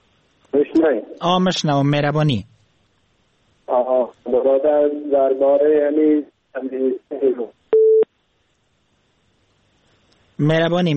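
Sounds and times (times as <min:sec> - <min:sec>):
speech: 0:00.5 - 0:02.5, 0:03.7 - 0:07.6, 0:10.4 - 0:10.9
telephone line tone after a caller's connection drops: 0:07.8 - 0:08.1.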